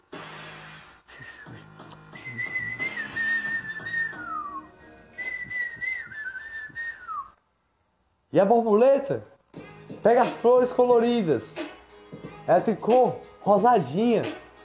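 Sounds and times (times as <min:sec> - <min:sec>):
person whistling in imitation of a little bird: 0:01.1 - 0:07.4
speech: 0:08.3 - 0:09.3, 0:10.0 - 0:11.6, 0:12.5 - 0:14.4.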